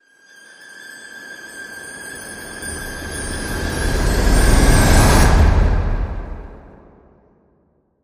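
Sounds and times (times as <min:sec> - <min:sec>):
excitement riser: 0:02.3 - 0:07.1.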